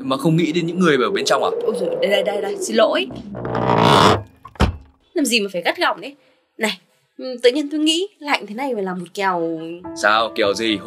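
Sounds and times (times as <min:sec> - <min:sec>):
speech: 0:00.0 - 0:04.3, 0:05.2 - 0:10.8
window sliding shut: 0:03.1 - 0:04.7.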